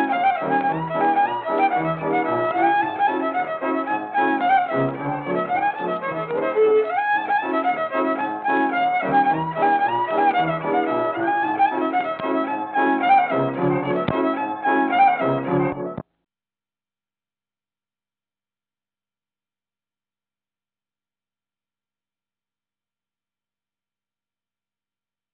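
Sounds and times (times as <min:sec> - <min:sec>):
music: 0:00.0 - 0:16.1.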